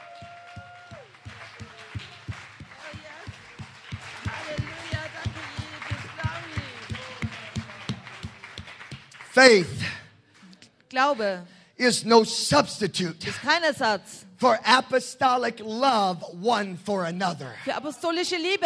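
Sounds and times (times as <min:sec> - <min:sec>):
audience clapping hands in a steady rhythm: 0:00.0 - 0:11.4
speech: 0:09.4 - 0:09.9, 0:11.0 - 0:18.6.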